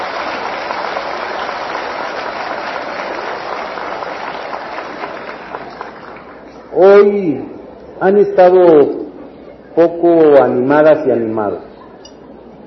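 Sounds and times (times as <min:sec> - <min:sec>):
crowd applause: 0:00.0 - 0:06.6
speech: 0:06.8 - 0:09.0, 0:09.8 - 0:11.7.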